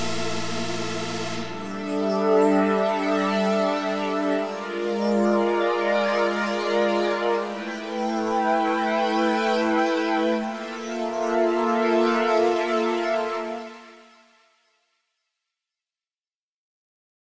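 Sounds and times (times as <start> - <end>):
synth pads: 0.0 - 13.0.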